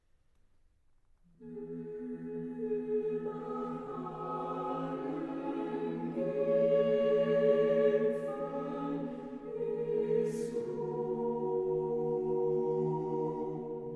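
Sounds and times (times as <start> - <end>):
vocal ensemble singing: 1.4 - 13.9.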